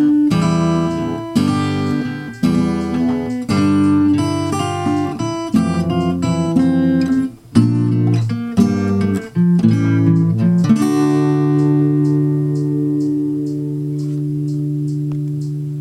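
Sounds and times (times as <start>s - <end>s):
alternate melody: 0.0s - 15.1s.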